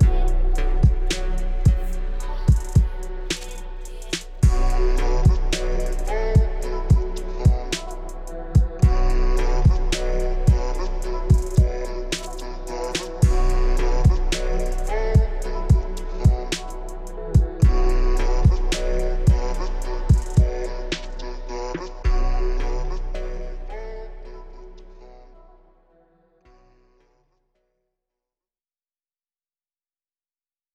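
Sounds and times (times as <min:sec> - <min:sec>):
beat: 0:00.0 - 0:23.8
vocal samples: 0:00.0 - 0:25.6.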